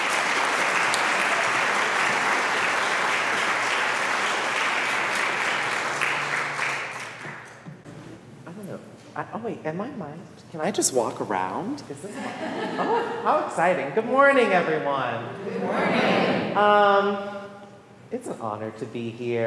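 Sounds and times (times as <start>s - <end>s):
audience applause: 0.0s - 7.6s
speech: 9.2s - 17.3s, 18.1s - 19.4s
laughter: 12.0s - 13.4s.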